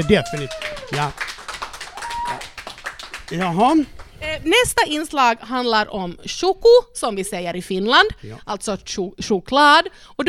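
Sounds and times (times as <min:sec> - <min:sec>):
speech: 0:00.0 - 0:01.4, 0:03.3 - 0:10.2
applause: 0:00.0 - 0:04.2.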